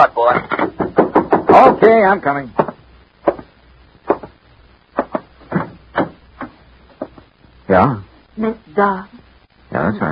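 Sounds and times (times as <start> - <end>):
speech: 0.0 - 0.8, 1.6 - 2.7, 7.7 - 10.1
knocking on a door: 0.3 - 2.0, 2.6 - 3.5, 4.1 - 4.4, 5.0 - 7.2.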